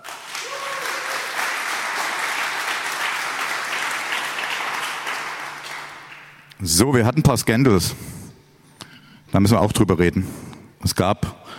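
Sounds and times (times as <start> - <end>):
audience applause: 0.0 - 6.5
speech: 6.6 - 8.2, 9.4 - 11.5.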